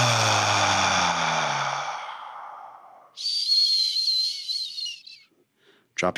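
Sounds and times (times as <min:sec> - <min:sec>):
long breathy exhale in breathing exercise: 0:00.0 - 0:03.2.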